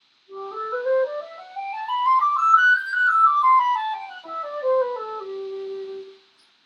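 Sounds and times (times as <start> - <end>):
flute: 0.3 - 6.3.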